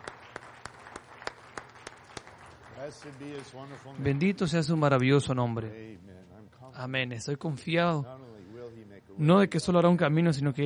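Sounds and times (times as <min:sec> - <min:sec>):
audience clapping in rhythm: 0:00.0 - 0:04.8
soft hum: 0:00.0 - 0:10.6
speech: 0:02.8 - 0:10.6.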